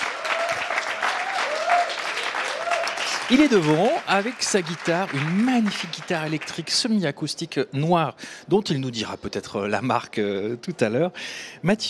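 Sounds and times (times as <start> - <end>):
applause: 0.0 - 7.0
speech: 3.3 - 11.8.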